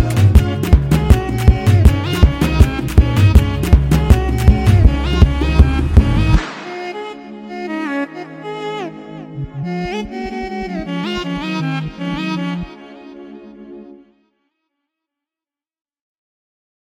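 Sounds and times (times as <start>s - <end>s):
violin love song over a beat: 0.0s - 12.8s.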